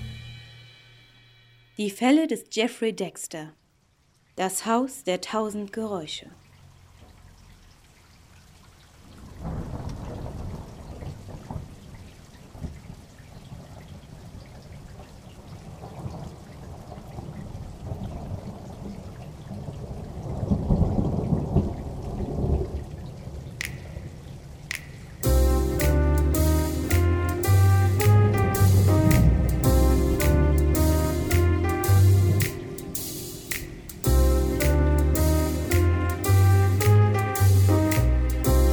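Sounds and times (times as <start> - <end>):
speech: 1.8 - 3.6, 4.4 - 6.4
heavy rain: 8.1 - 38.7
thunder: 9.2 - 11.9, 15.6 - 24.4, 28.1 - 31.4.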